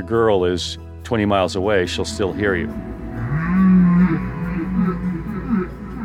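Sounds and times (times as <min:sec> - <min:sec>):
speech: 0:00.0 - 0:03.0
baleen whale song with moaning tones and groans: 0:02.7 - 0:06.0.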